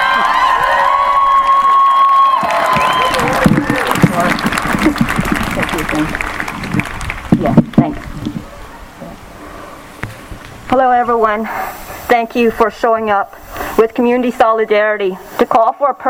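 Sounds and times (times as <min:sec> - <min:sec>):
crowd applause and cheering: 0:00.0 - 0:08.3
speech: 0:11.0 - 0:16.0.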